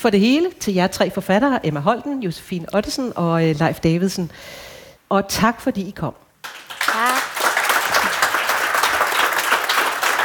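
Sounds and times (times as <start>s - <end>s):
speech: 0.0s - 7.1s
audience applause: 6.4s - 10.2s.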